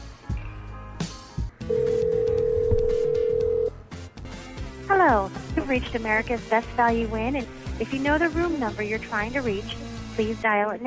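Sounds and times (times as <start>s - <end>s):
telephone call ring tone on the line: 1.6s - 3.8s
speech: 5.7s - 10.8s.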